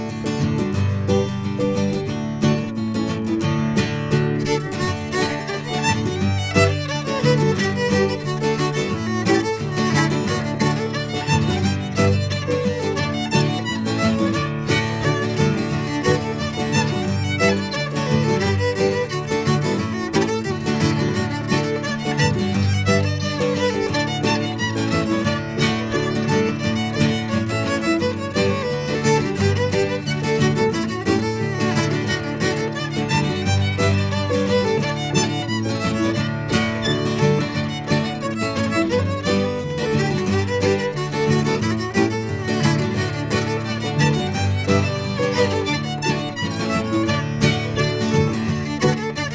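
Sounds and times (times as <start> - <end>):
fiddle hornpipe tune: 0.2 - 49.3.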